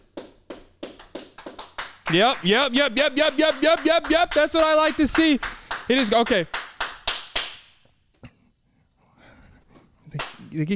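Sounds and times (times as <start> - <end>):
slow hand claps: 0.0 - 7.9, 10.2 - 10.5
speech: 2.1 - 6.6, 10.6 - 10.7.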